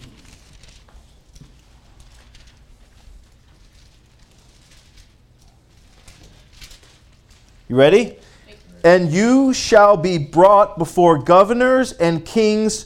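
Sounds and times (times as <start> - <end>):
Bible pages turning: 0.0 - 7.8
speech: 7.7 - 8.2, 8.8 - 12.8.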